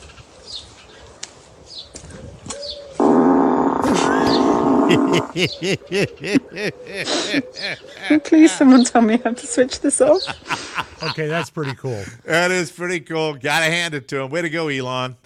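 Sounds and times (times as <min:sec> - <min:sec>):
Tesla car fart sound effect: 0:03.0 - 0:05.4
laughter: 0:03.8 - 0:08.9, 0:09.7 - 0:12.6
speech: 0:05.2 - 0:15.2.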